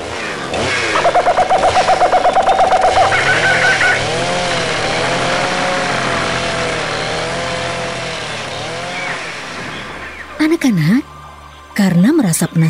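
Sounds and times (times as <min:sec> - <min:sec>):
motor saw cutting trees: 0:00.0 - 0:10.0
speech: 0:10.6 - 0:11.1, 0:11.8 - 0:12.6.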